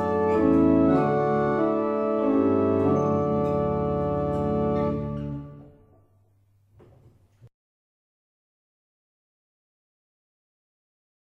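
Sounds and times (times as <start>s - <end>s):
barrel organ playing a double chant: 0.0s - 5.8s.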